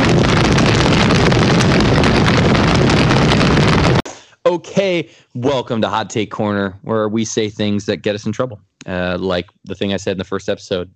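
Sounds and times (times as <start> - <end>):
roaring fire sound effect: 0.0 - 4.0
speech: 4.5 - 10.9.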